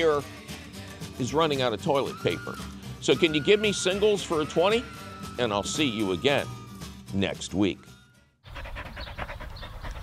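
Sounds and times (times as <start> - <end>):
speech: 0.0 - 0.4, 1.2 - 7.9
dog panting: 8.5 - 10.0.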